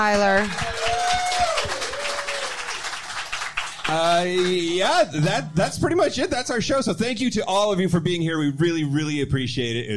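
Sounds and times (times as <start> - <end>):
speech: 0.0 - 1.7, 3.9 - 9.9
round of applause: 0.0 - 5.3.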